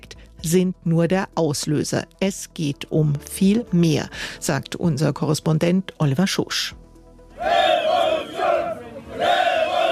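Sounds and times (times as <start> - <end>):
speech: 0.4 - 6.8
street protest crowd chanting: 7.4 - 9.9.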